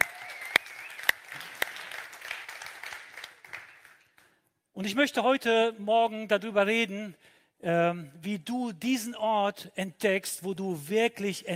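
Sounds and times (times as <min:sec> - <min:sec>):
audience applause: 0:00.0 - 0:04.0
speech: 0:04.8 - 0:11.5.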